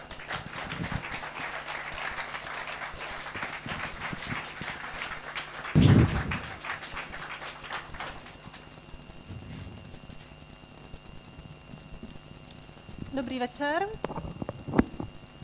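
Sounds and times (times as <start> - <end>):
audience applause: 0.0 - 8.6
speech: 13.2 - 14.1.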